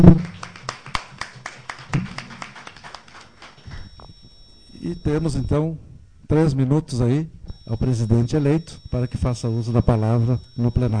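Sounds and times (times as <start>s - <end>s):
speech: 0.0s - 0.3s, 5.0s - 10.9s
applause: 0.0s - 3.9s.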